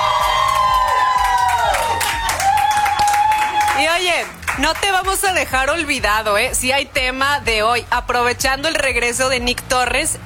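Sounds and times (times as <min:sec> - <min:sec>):
high-pitched screams and whoops: 0:00.0 - 0:04.0
crowd shouting and cheering: 0:00.0 - 0:05.7
speech: 0:04.6 - 0:10.2.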